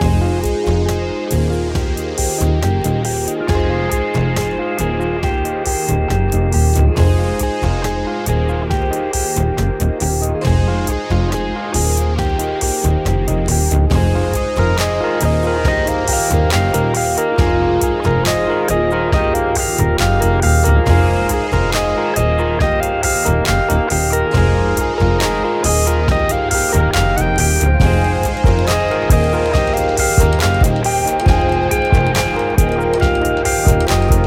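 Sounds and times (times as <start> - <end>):
chill music: 0.0 - 34.2.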